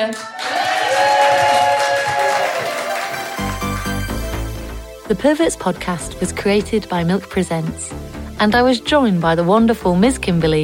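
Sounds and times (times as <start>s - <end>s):
speech: 0.0s - 0.7s, 5.1s - 10.6s
audience applause at the close of a queer stage show: 0.0s - 4.6s
steady music: 1.0s - 10.6s.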